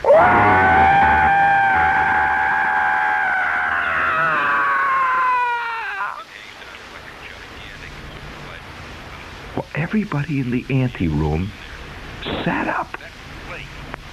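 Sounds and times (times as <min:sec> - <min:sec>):
person screaming: 0:00.0 - 0:06.2
speech: 0:09.9 - 0:11.6.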